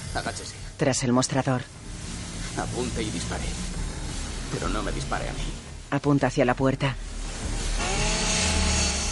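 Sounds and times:
speech: 0.1s - 1.8s, 2.6s - 3.7s, 4.5s - 7.6s
power saw cutting a metal shutter: 7.8s - 9.1s.

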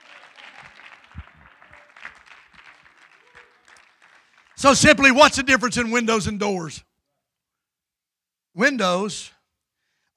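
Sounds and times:
audience clapping: 0.0s - 5.5s
speech: 4.6s - 6.9s, 8.6s - 9.4s.

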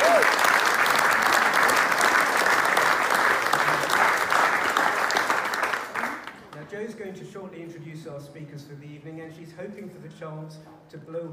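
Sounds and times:
audience applause: 0.0s - 6.6s
speech: 8.2s - 11.3s.

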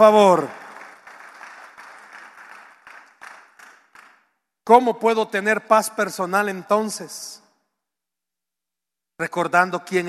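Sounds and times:
speech: 0.0s - 0.6s, 4.7s - 7.4s, 9.2s - 10.0s
audience applause: 0.0s - 4.2s.

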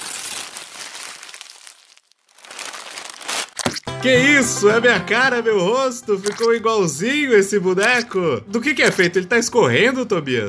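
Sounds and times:
gift wrapping paper crinkling and tearing: 0.0s - 3.9s
speech: 4.0s - 10.4s.

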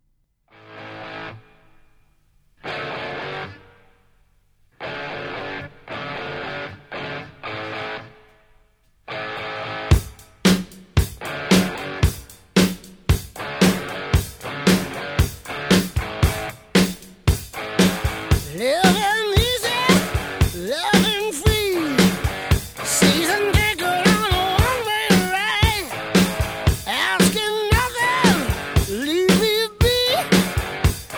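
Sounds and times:
loud distorted electric guitar chords: 0.6s - 1.8s, 2.6s - 3.9s, 4.8s - 8.4s, 9.1s - 31.1s
steady pounding drum beat: 9.9s - 31.1s.

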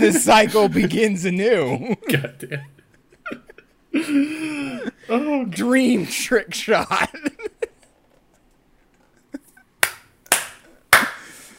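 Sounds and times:
laughter: 0.0s - 5.2s, 6.8s - 8.4s
speech: 0.0s - 7.5s
hand clapping: 9.8s - 11.4s.

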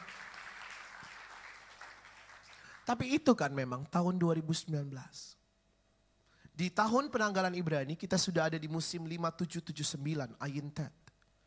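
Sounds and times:
audience applauding: 0.0s - 2.9s
speech: 2.9s - 5.4s, 6.6s - 11.0s.

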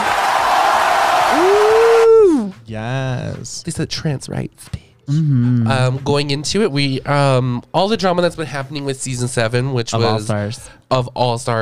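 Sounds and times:
cheering: 0.0s - 2.6s
speech: 2.8s - 11.6s.

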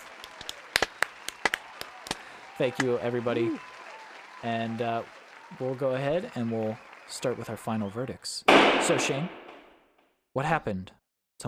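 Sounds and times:
sparse hand claps from a small group: 0.2s - 3.0s
speech: 2.6s - 3.7s, 4.4s - 9.4s, 10.4s - 11.4s.

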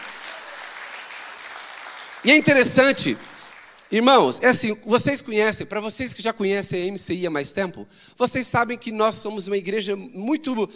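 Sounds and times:
crowd clapping: 0.0s - 4.0s
speech: 2.2s - 3.3s, 3.9s - 10.7s.

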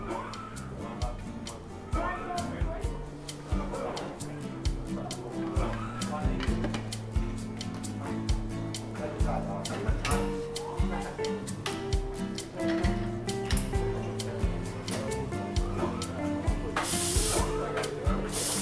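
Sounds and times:
seaside cafe chatter: 0.0s - 18.6s
hissing spray burst: 16.8s - 17.6s, 18.2s - 18.6s.

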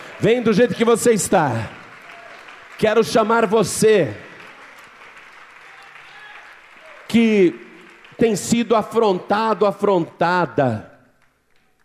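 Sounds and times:
audience applauding: 0.0s - 10.1s
speech: 0.2s - 1.8s, 2.8s - 4.3s, 7.1s - 7.6s, 8.2s - 10.9s.

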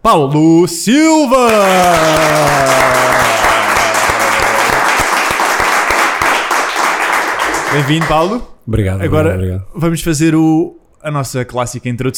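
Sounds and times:
speech: 0.0s - 3.4s, 7.7s - 12.1s
audience applause welcoming a guest: 1.5s - 8.4s.

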